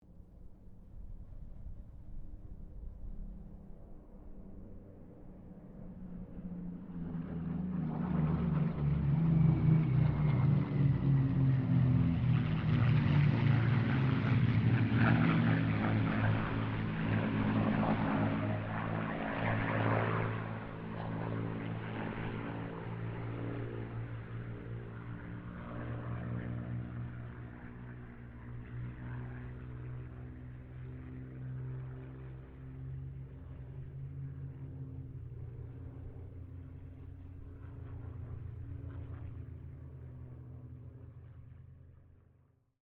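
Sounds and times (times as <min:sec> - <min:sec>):
Spitfire Mustang and Kittyhawk propeller aircraft pass: 0:00.0 - 0:42.8.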